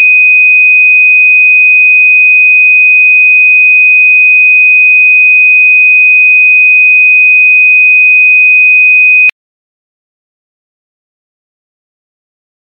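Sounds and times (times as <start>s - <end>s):
2500 Hz sine tone: 0.0s - 9.3s.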